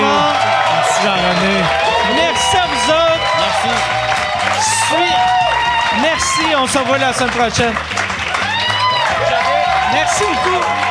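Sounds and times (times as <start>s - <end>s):
audience applause: 0.0s - 10.8s
speech: 1.0s - 1.8s, 3.6s - 4.0s, 6.1s - 8.0s, 9.9s - 10.8s.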